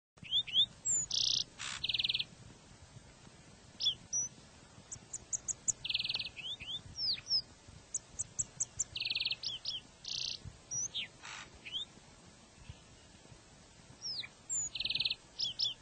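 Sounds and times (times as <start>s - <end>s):
lark sparrow singing slurred whistles, buzzy phrases and trills: 0.2s - 2.3s, 3.8s - 12.0s, 14.0s - 15.7s.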